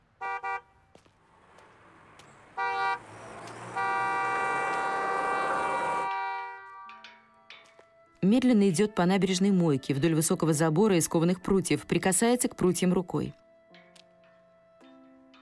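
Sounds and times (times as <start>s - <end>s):
car horns honking: 0.0s - 0.9s, 2.4s - 7.1s
street traffic with passenger cars driving slowly past: 0.0s - 15.4s
speech: 8.2s - 13.4s.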